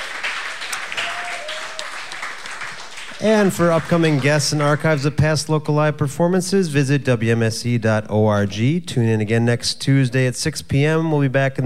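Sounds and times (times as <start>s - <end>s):
crowd applause: 0.0s - 5.1s
speech: 3.2s - 11.6s.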